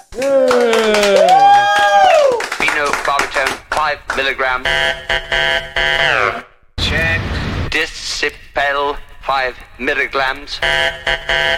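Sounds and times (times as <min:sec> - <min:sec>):
applause: 0:00.0 - 0:04.3
speech: 0:00.2 - 0:00.4, 0:03.9 - 0:06.5, 0:07.8 - 0:11.5.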